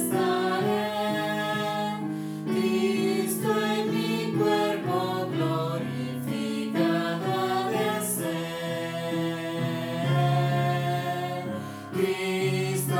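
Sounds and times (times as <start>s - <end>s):
piano piece: 0.0s - 12.9s.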